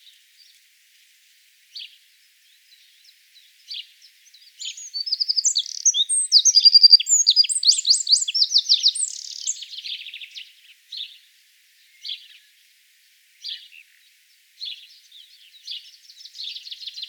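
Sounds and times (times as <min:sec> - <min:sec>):
wren singing: 0:03.6 - 0:11.2, 0:13.4 - 0:17.0.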